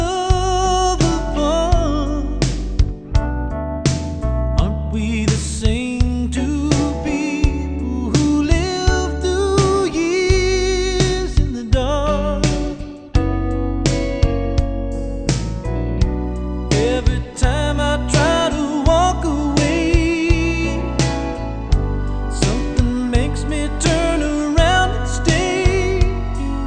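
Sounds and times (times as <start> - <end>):
country music: 0.0 - 26.6.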